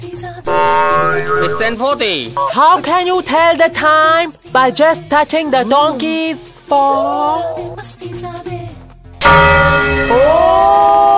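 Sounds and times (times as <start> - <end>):
speech: 0.3 - 8.3, 9.3 - 10.6
bell ringing: 0.5 - 1.8.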